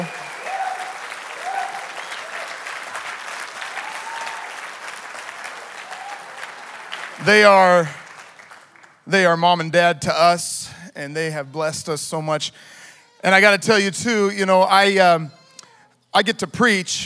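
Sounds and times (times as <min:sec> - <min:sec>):
loud rising whoop: 0:00.0 - 0:02.6, 0:03.6 - 0:04.7, 0:05.8 - 0:06.5
crowd applause: 0:00.0 - 0:09.0
speech: 0:07.2 - 0:08.0, 0:09.1 - 0:15.4, 0:16.2 - 0:17.0.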